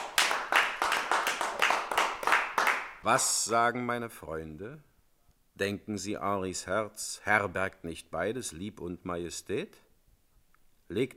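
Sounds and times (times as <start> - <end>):
applause, hands clapping: 0.0 - 3.4
speech: 3.0 - 4.9, 5.6 - 9.8, 10.9 - 11.1.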